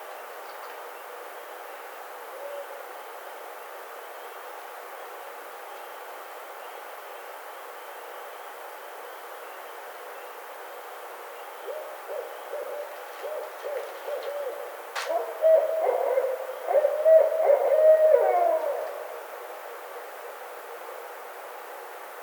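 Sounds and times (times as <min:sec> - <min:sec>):
Barred Owl calling: 0:11.6 - 0:19.8.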